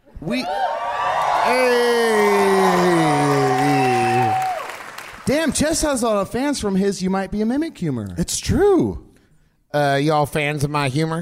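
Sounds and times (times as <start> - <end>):
speech: 0.2 - 0.7, 5.5 - 9.1, 9.7 - 11.2
live audience whooping and cheering: 0.2 - 5.2.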